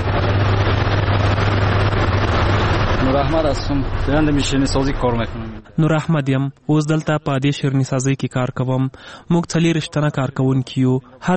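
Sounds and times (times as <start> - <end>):
sweets-making machine in a confectionery workshop humming: 0.0 - 6.1
speech: 3.2 - 11.3.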